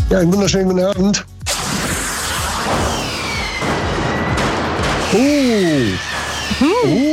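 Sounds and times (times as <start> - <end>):
speech: 0.1 - 1.3, 5.1 - 7.1
fireworks exploding: 1.5 - 6.9.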